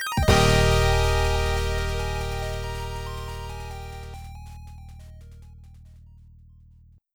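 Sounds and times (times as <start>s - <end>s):
stage clear jingle: 0.3s - 4.8s.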